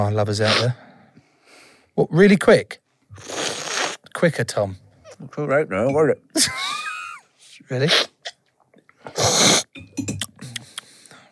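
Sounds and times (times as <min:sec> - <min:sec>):
speech: 0:00.0 - 0:00.8, 0:02.0 - 0:03.5, 0:04.2 - 0:06.8, 0:07.6 - 0:08.1
loud slurping of coffee: 0:03.2 - 0:04.0
person murmuring: 0:10.0 - 0:10.8.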